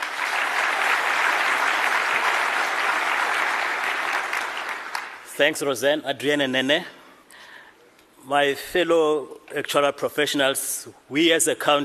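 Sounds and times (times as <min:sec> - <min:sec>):
round of applause: 0:00.0 - 0:05.3
speech: 0:05.4 - 0:07.0, 0:08.3 - 0:11.8.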